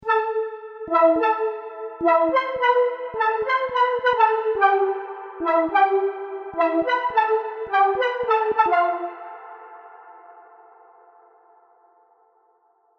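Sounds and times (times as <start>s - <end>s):
Serum synthesizer sounds: 0.0s - 10.2s.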